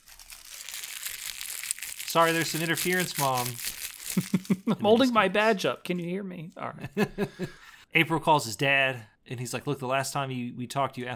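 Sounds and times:
plastic being pulled out, crinkling: 0:00.0 - 0:04.7
speech: 0:02.1 - 0:11.1
laughter: 0:04.2 - 0:04.9, 0:06.8 - 0:07.6.

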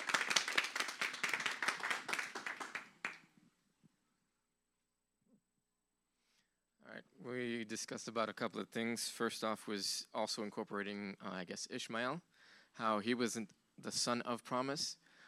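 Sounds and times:
group clapping hands: 0:00.0 - 0:03.3
speech: 0:07.2 - 0:15.0.

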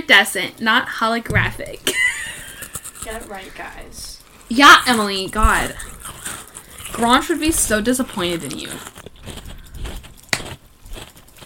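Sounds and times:
speech: 0:00.1 - 0:02.1, 0:03.0 - 0:06.3, 0:07.0 - 0:09.0
crunch of biting into a lychee-flavoured treat: 0:02.3 - 0:11.4
soft mouth and chewing noises: 0:02.4 - 0:11.4.

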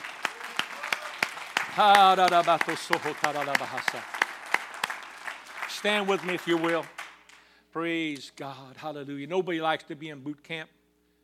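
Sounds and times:
audience clapping hands: 0:00.0 - 0:07.6
speech: 0:01.8 - 0:04.2, 0:05.8 - 0:07.0, 0:07.7 - 0:10.8.

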